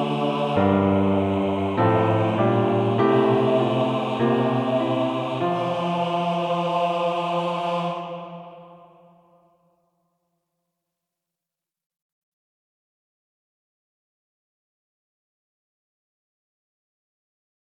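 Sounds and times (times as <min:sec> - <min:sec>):
senior choir basses singing: 0:00.0 - 0:08.7.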